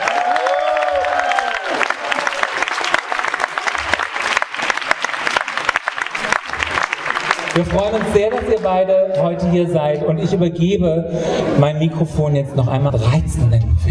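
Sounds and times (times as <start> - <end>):
audience applause: 0.0 - 8.7
speech: 7.6 - 13.8.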